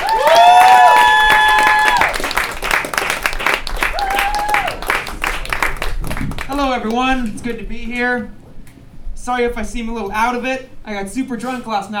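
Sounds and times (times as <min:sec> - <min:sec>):
audience applause for a comedian: 0:00.0 - 0:08.9
speech: 0:06.8 - 0:08.4, 0:09.2 - 0:11.9.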